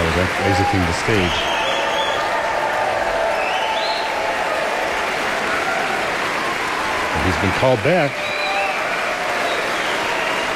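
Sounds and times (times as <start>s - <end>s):
concert audience applause: 0.0s - 10.5s
speech: 0.2s - 1.6s, 7.4s - 8.4s.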